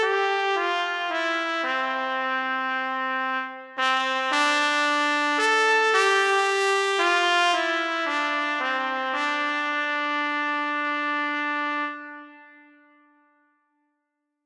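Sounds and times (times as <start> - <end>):
solo trumpet: 0.0 - 13.4.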